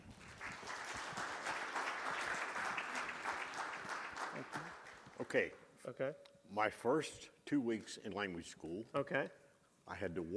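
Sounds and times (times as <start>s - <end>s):
audience applause welcoming a speaker at a presentation: 0.0s - 5.3s
speech: 5.3s - 10.3s.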